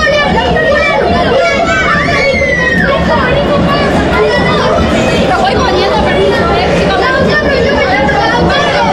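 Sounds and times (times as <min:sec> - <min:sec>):
excited children chattering in a stadium: 0:00.0 - 0:08.9.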